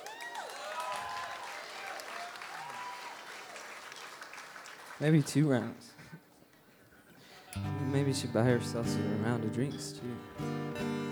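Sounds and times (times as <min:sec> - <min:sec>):
whistles and cheers: 0:00.0 - 0:04.2
crowd clapping: 0:00.0 - 0:06.0
speech: 0:05.0 - 0:06.0, 0:07.6 - 0:11.0.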